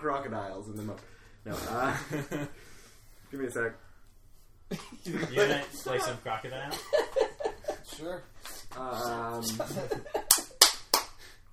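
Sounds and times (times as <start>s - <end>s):
speech: 0.0s - 2.7s, 3.3s - 3.9s, 4.7s - 7.3s, 8.0s - 10.4s
laughter: 4.7s - 10.6s
hand clapping: 7.9s - 11.4s.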